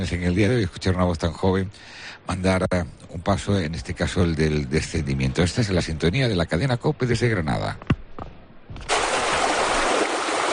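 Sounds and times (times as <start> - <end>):
speech: 0.0 - 8.0
flowing water: 8.8 - 10.5.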